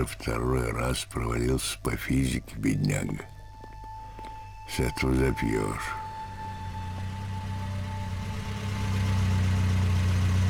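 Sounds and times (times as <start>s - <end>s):
speech: 0.0s - 3.3s, 4.7s - 6.0s
large American car taxi pulling up and idling: 6.1s - 10.4s.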